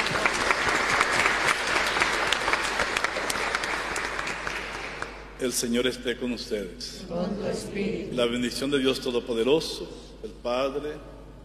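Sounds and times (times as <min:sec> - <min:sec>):
applause in church: 0:00.0 - 0:05.4
speech: 0:05.4 - 0:11.4.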